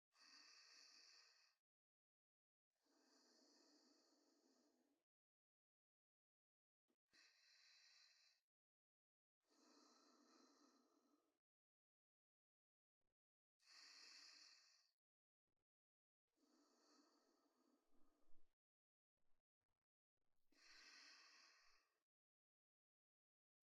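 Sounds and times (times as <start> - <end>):
person breathing in sleep: 0.2 - 1.6, 2.8 - 4.8, 7.2 - 8.4, 9.5 - 11.2, 13.6 - 15.0, 16.4 - 18.5, 20.5 - 22.0.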